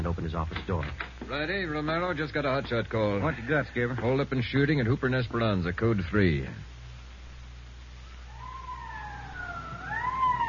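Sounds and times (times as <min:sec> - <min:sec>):
speech: 0:00.1 - 0:06.7
police car siren wailing: 0:08.3 - 0:10.4.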